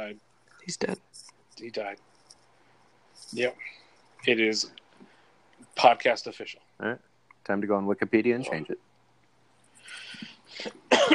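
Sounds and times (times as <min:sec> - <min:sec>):
speech: 0:00.1 - 0:02.1, 0:03.2 - 0:04.8, 0:05.7 - 0:08.9, 0:09.9 - 0:11.1
person coughing: 0:10.6 - 0:11.1.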